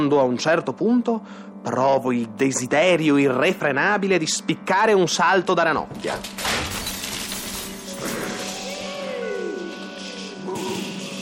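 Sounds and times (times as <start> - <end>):
speech: 0.0 - 6.7
chandelier crashing to the floor and shattering: 6.0 - 8.8.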